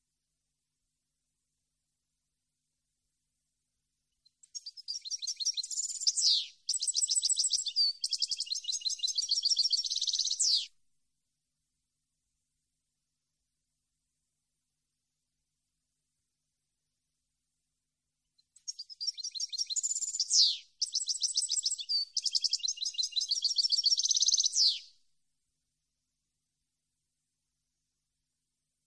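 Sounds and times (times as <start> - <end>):
European goldfinch song: 4.2 - 10.7, 18.4 - 25.0.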